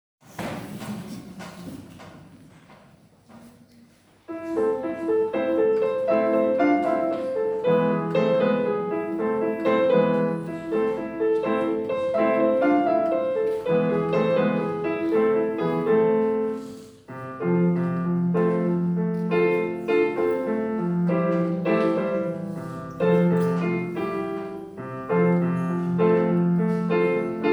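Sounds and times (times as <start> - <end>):
pianoforte: 0.3 - 27.5.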